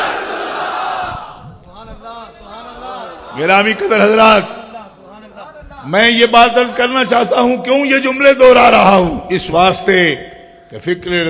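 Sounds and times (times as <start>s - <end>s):
crowd shouting in response to chants at a religious gathering: 0.0s - 1.4s, 2.5s - 4.0s
speech: 3.4s - 4.6s, 5.8s - 11.2s.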